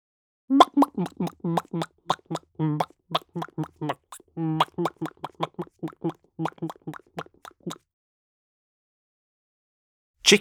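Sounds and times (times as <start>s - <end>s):
chicken at rest clucking: 0.6s - 7.8s.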